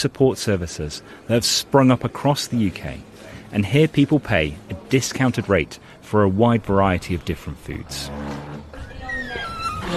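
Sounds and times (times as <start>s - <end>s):
speech: 0.0s - 8.5s
noisy door opening: 7.6s - 9.9s.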